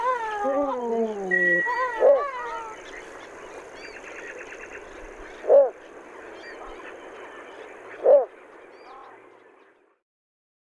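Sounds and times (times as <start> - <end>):
birds and insects chorus: 0.0 - 10.0
little bittern barking: 0.4 - 2.8, 5.4 - 5.8, 7.9 - 8.3.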